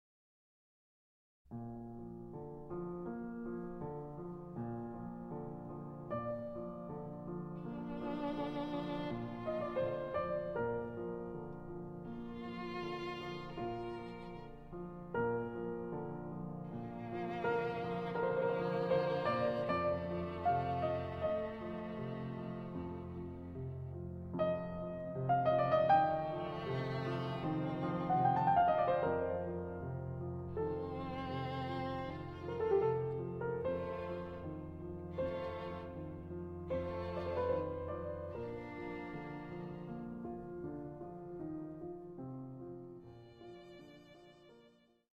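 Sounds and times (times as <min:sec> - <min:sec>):
violin sonata in F major adagio: 0:01.7 - 0:45.1.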